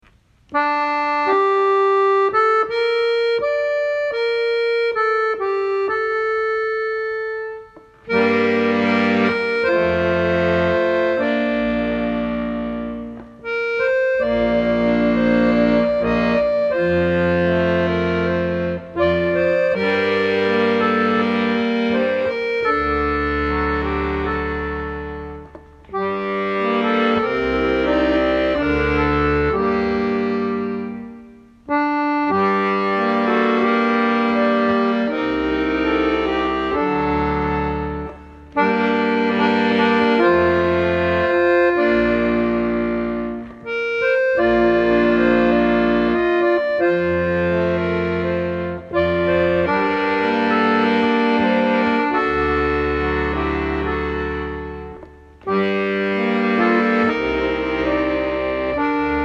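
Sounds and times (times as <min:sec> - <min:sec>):
accordion arrangement: 0:00.0 - 0:59.2.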